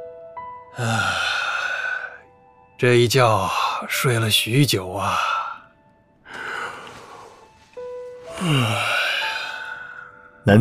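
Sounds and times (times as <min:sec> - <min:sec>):
speech: 0:00.8 - 0:01.2, 0:02.8 - 0:05.4, 0:08.4 - 0:08.9
man yawning: 0:00.8 - 0:02.2, 0:08.3 - 0:10.0.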